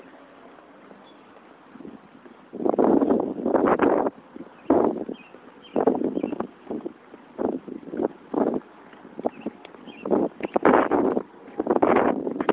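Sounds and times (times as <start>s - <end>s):
wind: 0.0s - 12.5s
birds: 0.8s - 1.5s, 4.4s - 6.8s, 8.0s - 11.2s.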